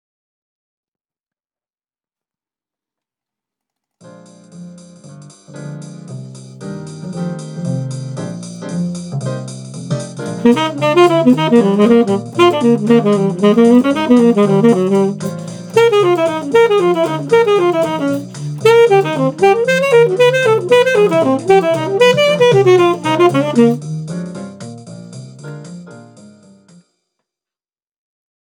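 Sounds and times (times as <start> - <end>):
blues music in B flat: 10.0 - 24.5.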